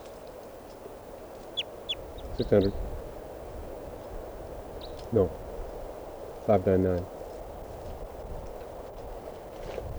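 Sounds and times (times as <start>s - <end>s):
bird chirping: 1.4s - 3.0s, 4.7s - 5.1s
speech: 2.4s - 2.9s, 5.1s - 5.4s, 6.4s - 7.2s.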